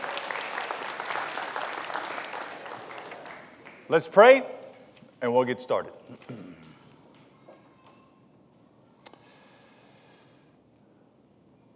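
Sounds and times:
audience applause: 0.0s - 4.2s
speech: 3.9s - 4.6s, 5.2s - 6.4s.

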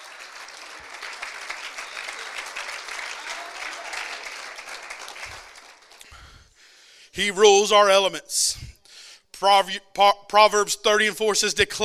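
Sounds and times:
crowd clapping hands: 0.0s - 6.2s
speech: 7.2s - 8.6s, 9.4s - 11.8s.

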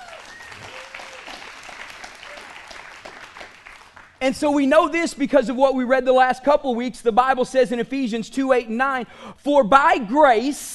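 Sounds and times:
audience applauding: 0.0s - 4.2s
speech: 4.2s - 10.7s.

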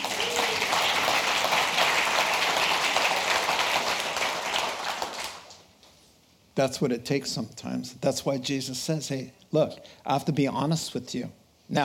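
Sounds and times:
crowd applause: 0.0s - 5.6s
speech: 6.6s - 11.8s.

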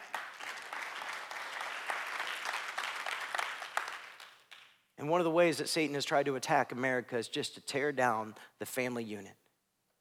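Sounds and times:
audience clapping: 0.0s - 4.8s
speech: 5.0s - 9.4s.

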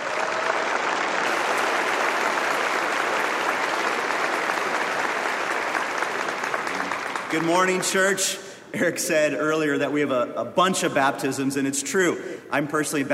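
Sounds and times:
church congregation applauding a baptism candidate: 0.0s - 8.2s
speech: 7.3s - 13.1s.

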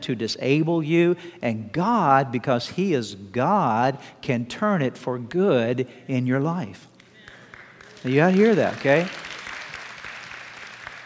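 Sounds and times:
speech: 0.0s - 6.9s, 8.0s - 9.3s
weak audience applause: 7.2s - 11.0s.

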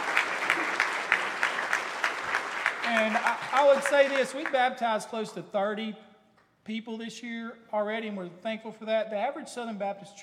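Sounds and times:
audience applauding: 0.0s - 4.7s
speech: 3.1s - 10.2s.

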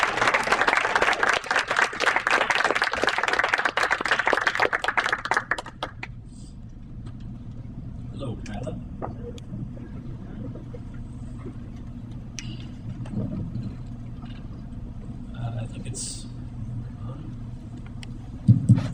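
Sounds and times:
crowd applauding: 0.0s - 6.1s
low hum: 0.0s - 18.9s.

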